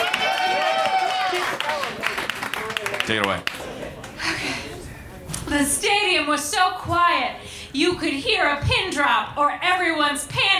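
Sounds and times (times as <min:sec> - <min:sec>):
audience clapping: 0:00.0 - 0:04.4
speech: 0:03.1 - 0:03.6, 0:05.5 - 0:10.5.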